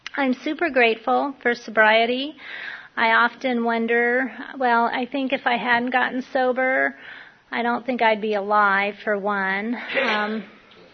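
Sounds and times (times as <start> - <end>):
speech: 0.2 - 10.6
sneeze: 9.9 - 10.6.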